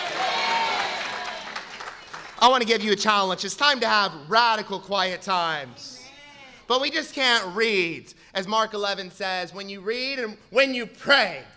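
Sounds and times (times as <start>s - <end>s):
audience clapping: 0.0s - 3.2s
speech: 2.4s - 6.0s, 6.7s - 11.5s.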